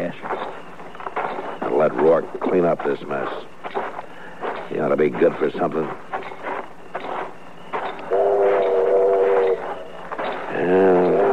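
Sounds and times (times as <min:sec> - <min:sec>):
train pulling into station: 0:00.0 - 0:11.3
speech: 0:01.8 - 0:03.8, 0:04.7 - 0:06.1
steam whistle blasts: 0:08.0 - 0:09.9.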